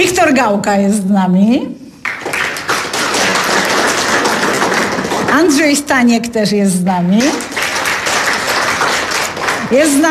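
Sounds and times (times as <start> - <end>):
speech: 0.0 - 1.8, 5.3 - 7.5, 9.7 - 10.1
crowd applauding: 2.0 - 5.7, 7.2 - 10.1.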